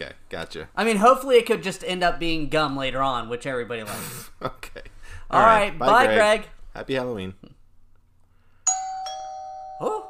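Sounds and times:
speech: 0.0s - 7.5s
doorbell chiming two quick bright tones: 8.7s - 10.0s.

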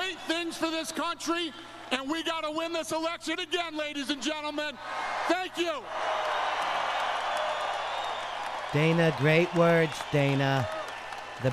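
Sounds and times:
speech: 0.4s - 6.2s, 8.7s - 10.8s
crowd cheering and applauding at rally: 4.8s - 11.5s.

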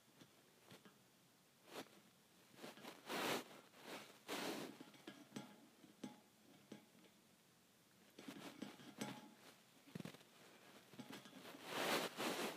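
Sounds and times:
faint steady hiss: 0.0s - 12.5s
metal bars tapping on metal: 4.7s - 7.2s, 8.2s - 9.5s.

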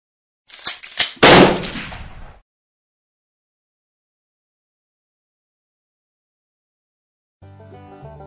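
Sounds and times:
gun clicks: 0.5s - 2.3s
gunshot from a gun fired point-blank: 1.0s - 2.4s.

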